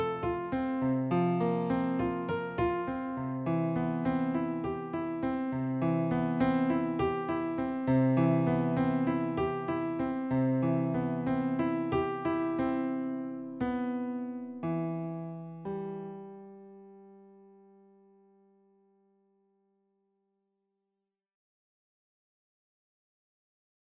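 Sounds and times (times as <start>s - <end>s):
piano serenade groove: 0.0s - 16.2s.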